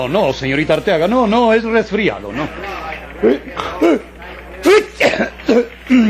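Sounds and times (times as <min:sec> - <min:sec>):
speech: 0:00.0 - 0:04.1
allergy sneezes: 0:04.7 - 0:06.0.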